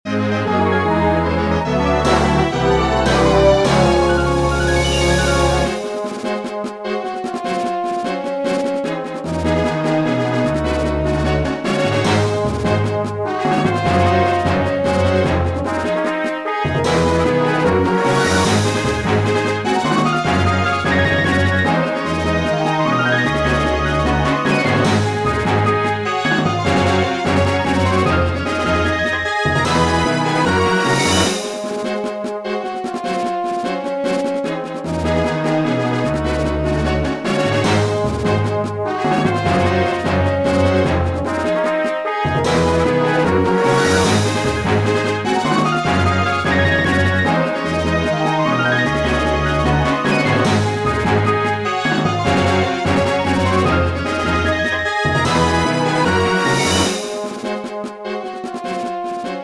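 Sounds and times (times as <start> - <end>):
battle victory music: 0.1 - 59.4.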